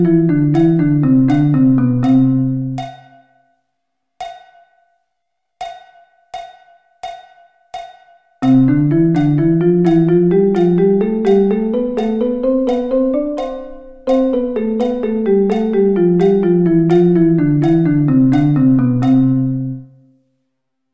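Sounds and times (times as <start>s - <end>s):
drum double sticking pattern: 0.0s - 3.4s, 5.6s - 19.9s.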